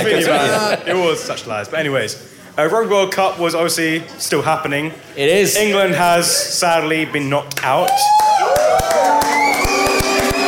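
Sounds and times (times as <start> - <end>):
speech: 0.0 - 8.9
sharp claps: 7.5 - 10.4
crowd cheering and shouting: 7.8 - 10.4
whooping voices: 7.8 - 10.4.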